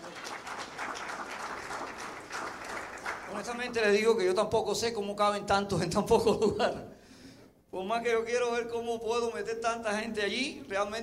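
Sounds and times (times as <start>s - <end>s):
crowd clapping: 0.0s - 4.0s
speech: 3.3s - 7.0s, 7.7s - 11.0s.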